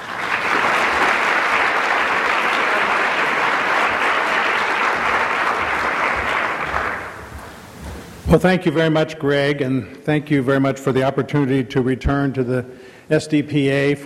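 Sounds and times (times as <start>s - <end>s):
audience at a society's annual meeting applauding a doctor's introduction: 0.0s - 8.2s
speech: 8.3s - 14.0s.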